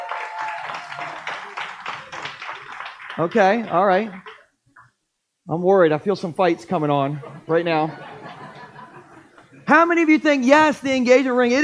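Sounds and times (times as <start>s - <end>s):
audience applause: 0.0s - 4.4s
speech: 3.2s - 4.3s, 5.5s - 8.2s, 9.7s - 11.6s
laughter: 7.1s - 9.7s.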